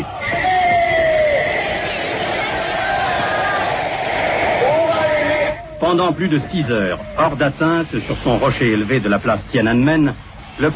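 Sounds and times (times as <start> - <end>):
huge crowd of Red Guards cheering and shouting: 0.0 - 7.8
speech: 5.9 - 10.7.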